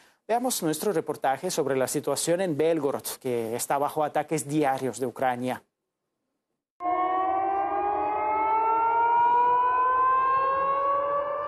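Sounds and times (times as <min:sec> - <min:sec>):
speech: 0:00.3 - 0:05.7
air raid siren wailing in Belgorod: 0:06.8 - 0:11.4.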